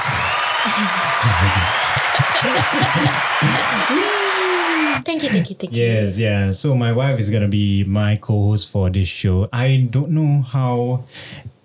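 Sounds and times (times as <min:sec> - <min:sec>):
round of applause: 0:00.0 - 0:05.1
speech: 0:00.7 - 0:04.3, 0:04.9 - 0:11.6
voices talking and laughing: 0:00.7 - 0:06.2.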